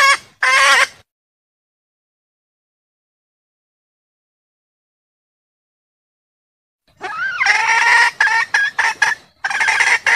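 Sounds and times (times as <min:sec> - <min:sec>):
junglefowl clucking: 0:00.0 - 0:01.0, 0:07.0 - 0:10.1.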